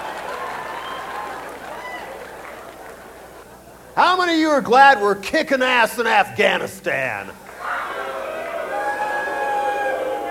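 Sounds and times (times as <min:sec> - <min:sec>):
audience cheering: 0:00.0 - 0:03.4, 0:07.4 - 0:10.2
speech: 0:04.0 - 0:07.4.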